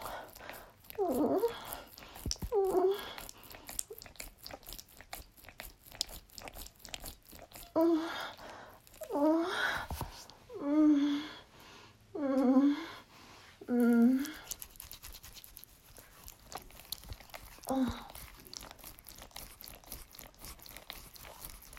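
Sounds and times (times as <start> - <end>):
wet noises: 0.0 - 10.4, 13.6 - 21.7
person whimpering: 1.0 - 1.9, 2.5 - 3.4, 7.6 - 8.4, 9.0 - 9.9, 12.2 - 14.5, 17.6 - 18.2.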